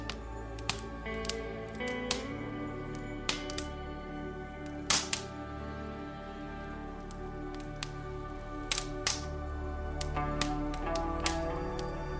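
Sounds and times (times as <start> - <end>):
fireplace fire: 0.0 - 12.1
soft relaxing music: 0.0 - 12.1.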